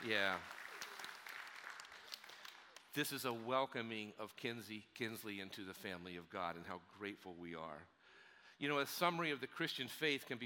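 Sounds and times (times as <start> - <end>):
speech: 0.0 - 0.6, 2.9 - 7.9, 8.6 - 10.4
audience applauding: 0.0 - 2.9.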